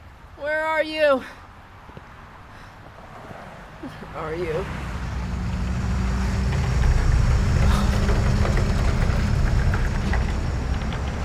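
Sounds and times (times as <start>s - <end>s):
speech: 0.8s - 1.4s, 4.2s - 4.8s
heavy engine rumble of a shield bug armored vehicle: 2.5s - 11.2s.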